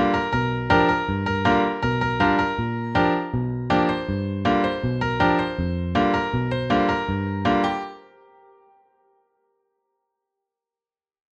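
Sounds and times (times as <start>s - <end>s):
IDM improvisation: 0.0s - 8.4s.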